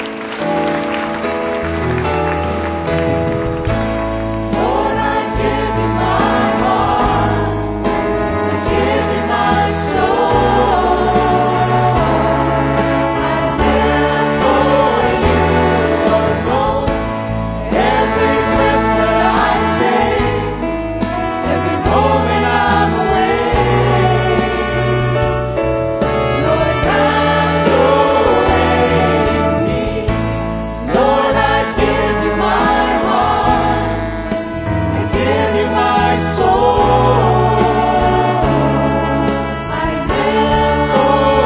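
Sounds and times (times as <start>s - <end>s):
audience clapping and cheering: 0.0s - 4.4s
worship music with organ and band: 0.0s - 41.4s.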